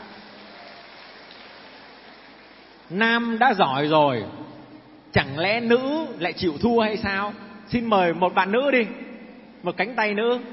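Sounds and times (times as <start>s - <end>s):
crowd applauding: 0.0s - 2.9s
speech: 2.9s - 4.4s, 5.2s - 9.0s, 9.6s - 10.5s.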